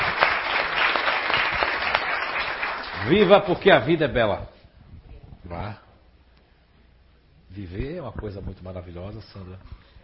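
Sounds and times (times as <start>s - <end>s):
round of applause: 0.0s - 3.6s
speech: 3.1s - 4.5s, 5.4s - 5.8s, 7.6s - 9.9s.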